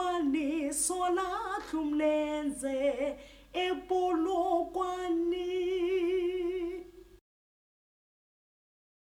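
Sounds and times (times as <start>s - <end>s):
soprano section of a gospel choir singing: 0.0s - 6.9s.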